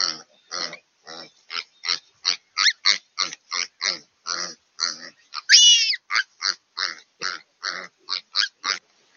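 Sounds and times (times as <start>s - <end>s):
piglets grunting while attacked by ravens: 0.0s - 9.1s
piglet squealing: 5.4s - 6.2s.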